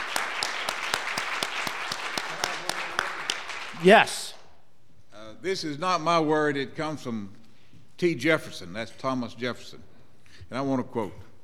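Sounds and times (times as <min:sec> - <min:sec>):
audience applause: 0:00.0 - 0:04.0
speech: 0:03.8 - 0:04.2, 0:05.4 - 0:07.4, 0:08.0 - 0:11.3.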